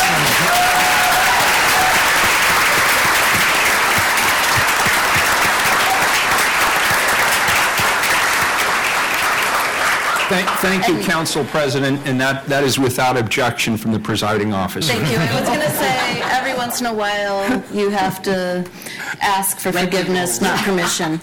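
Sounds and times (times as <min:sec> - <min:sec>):
audience applause: 0:00.0 - 0:11.8
speech: 0:10.3 - 0:21.2
laughter: 0:14.8 - 0:18.6, 0:20.3 - 0:21.2.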